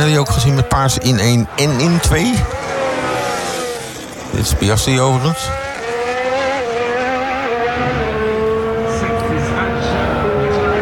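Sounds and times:
speech: 0:00.0 - 0:02.6, 0:04.3 - 0:05.6
Formula 1 car engine screaming during a qualifying lap as the car drifts: 0:00.0 - 0:10.8.

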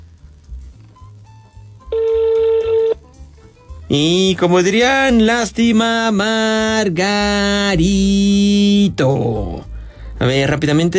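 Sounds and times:
faint low rumbling background: 0:00.0 - 0:10.9
telephone ringback tone on a call: 0:01.9 - 0:03.0
speech: 0:03.9 - 0:09.6, 0:10.2 - 0:10.9.

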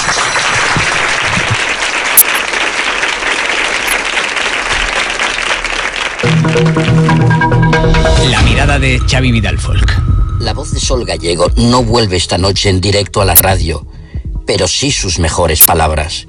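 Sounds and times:
applause: 0:00.0 - 0:07.6
speech: 0:06.6 - 0:16.2.

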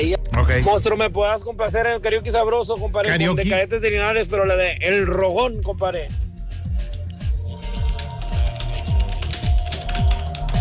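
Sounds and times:
speech: 0:00.0 - 0:06.2
music with a steady thumping beat: 0:00.0 - 0:10.5
typing on a computer keyboard: 0:07.5 - 0:10.5.

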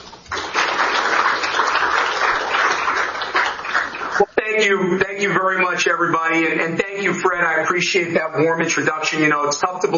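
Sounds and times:
audience applause welcoming a speaker at an Atlantic Council event: 0:00.3 - 0:04.3
speech: 0:04.6 - 0:09.9.

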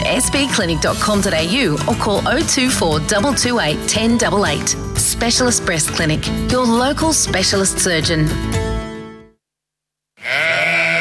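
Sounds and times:
speech: 0:00.2 - 0:08.6
sheep bleating: 0:10.2 - 0:10.9.

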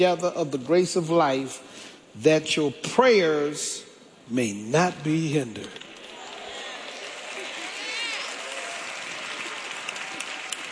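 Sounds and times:
speech: 0:00.0 - 0:05.8
audience clapping: 0:05.9 - 0:10.7.

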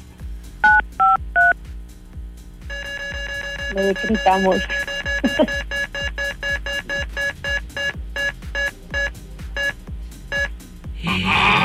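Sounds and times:
soft rhythmic thumps: 0:00.8 - 0:10.6
telephone keypad dialing beeps: 0:02.7 - 0:10.5
rapid pulsing tone: 0:02.8 - 0:10.5
speech: 0:03.7 - 0:05.7.

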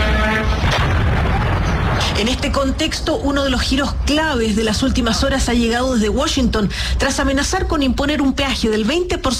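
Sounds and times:
explosion in Kuwait: 0:00.2 - 0:04.9
speech: 0:02.4 - 0:09.3.

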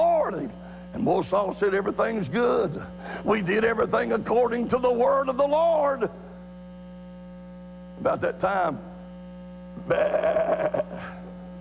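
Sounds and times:
steady electrical hum: 0:00.0 - 0:11.5
speech: 0:00.3 - 0:06.2, 0:08.0 - 0:08.9, 0:09.8 - 0:11.1
person imitating sheep bleat: 0:09.8 - 0:11.3.

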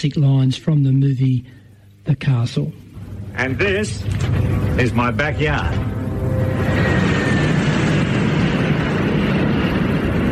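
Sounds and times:
speech: 0:00.0 - 0:02.8, 0:03.4 - 0:05.9
Airbus airliner flying low overhead near the end of a runway: 0:03.0 - 0:10.2.

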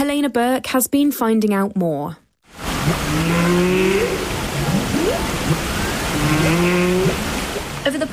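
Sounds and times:
speech: 0:00.0 - 0:04.3
humpback whales off the coast of Iceland: 0:02.6 - 0:07.9.

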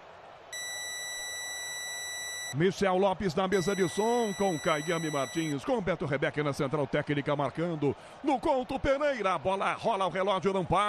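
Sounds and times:
radio station time signal high-pitched electronic beep: 0:00.6 - 0:02.6, 0:03.5 - 0:05.5
speech: 0:02.5 - 0:10.8.

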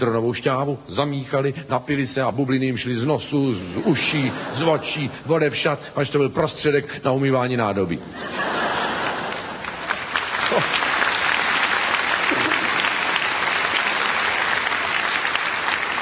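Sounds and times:
speech: 0:00.0 - 0:08.6, 0:10.5 - 0:10.8
laughter: 0:03.7 - 0:05.3, 0:08.0 - 0:11.2, 0:12.2 - 0:13.2
audience applause: 0:08.6 - 0:16.0.

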